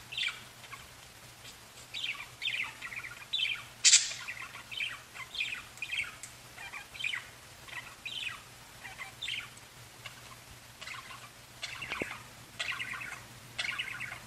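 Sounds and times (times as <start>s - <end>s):
low background hum: 0.0s - 14.2s
budgerigar chattering: 2.0s - 14.2s
sharp click: 3.8s - 4.2s.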